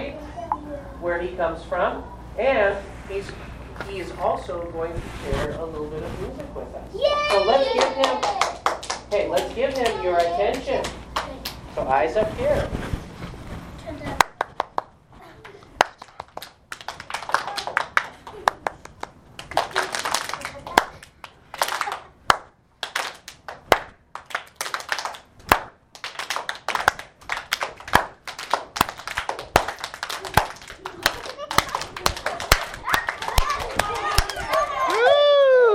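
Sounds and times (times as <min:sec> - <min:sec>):
speech: 0:01.0 - 0:11.0, 0:11.8 - 0:12.9
children clapping in a round of applause: 0:07.2 - 0:11.6, 0:14.2 - 0:35.4.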